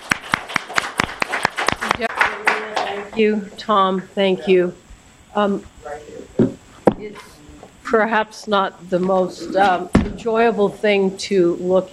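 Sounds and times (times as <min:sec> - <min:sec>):
audience applause after a talk at a massage regulation meeting: 0:00.0 - 0:03.2
speech: 0:03.2 - 0:06.4, 0:07.0 - 0:11.9.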